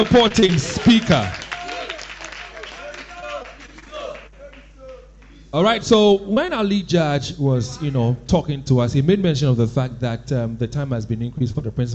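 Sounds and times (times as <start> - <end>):
speech: 0.0 - 1.4, 5.5 - 11.9
audience clapping at a high school debate: 0.0 - 5.5.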